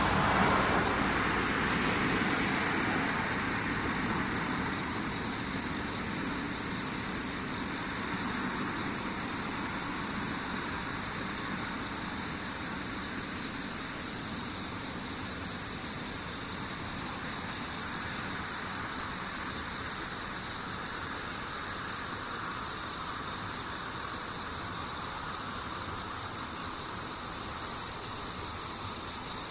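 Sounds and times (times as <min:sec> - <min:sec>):
insects steady shrill drone: 0:00.0 - 0:29.5.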